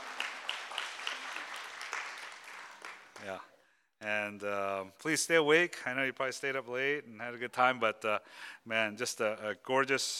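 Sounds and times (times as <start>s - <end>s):
church congregation applauding their pastor: 0.0s - 3.5s
speech: 3.2s - 10.1s.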